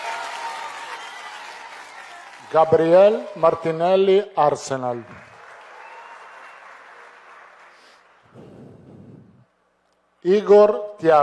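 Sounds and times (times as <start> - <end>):
crowd applauding: 0.0 - 3.8, 4.8 - 8.9
speech: 2.5 - 5.3, 10.2 - 11.2.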